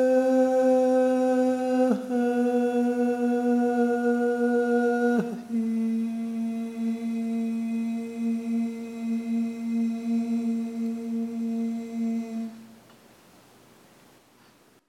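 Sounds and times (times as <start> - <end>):
tenor singing solo: 0.0 - 12.8.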